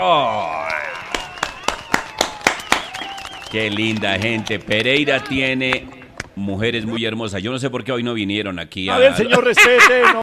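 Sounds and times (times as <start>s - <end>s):
speech: 0.0s - 0.6s, 3.5s - 10.2s
audience clapping rhythmically at Plaza Victoria in Pereira: 0.7s - 6.3s
laughter: 8.9s - 10.2s.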